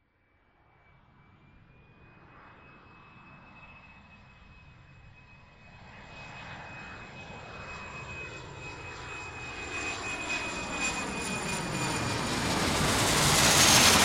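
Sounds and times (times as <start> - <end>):
jet flyover: 0.6 - 14.0.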